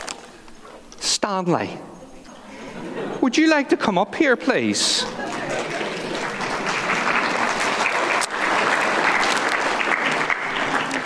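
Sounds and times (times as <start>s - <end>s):
speech: 1.2s - 1.9s, 3.0s - 5.3s
laughter: 2.3s - 11.0s
audience applause: 4.2s - 11.0s.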